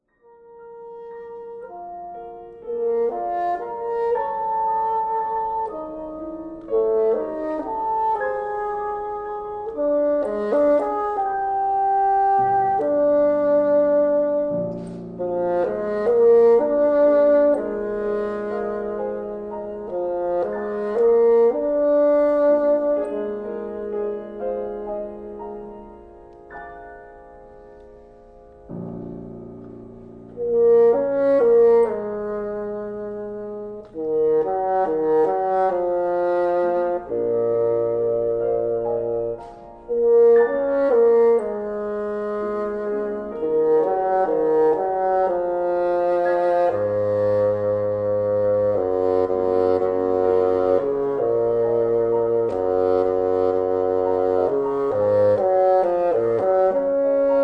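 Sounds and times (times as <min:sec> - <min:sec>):
bassoon: 0:00.0 - 0:57.4.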